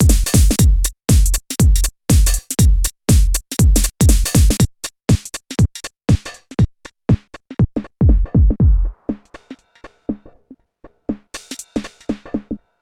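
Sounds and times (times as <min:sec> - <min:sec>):
Yamaha TG500 synthesizer drum kit sounds: 0:00.0 - 0:06.4, 0:08.0 - 0:09.5.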